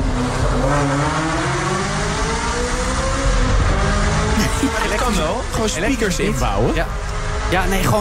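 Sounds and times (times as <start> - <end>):
high-performance sports car engine revving: 0.0 - 8.0
laughter: 4.3 - 6.6
speech: 5.4 - 8.0.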